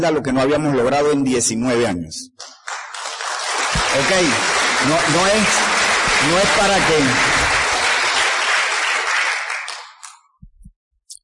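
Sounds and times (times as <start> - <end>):
speech: 0.0 - 2.6, 3.9 - 7.4
audience applause: 2.4 - 10.2.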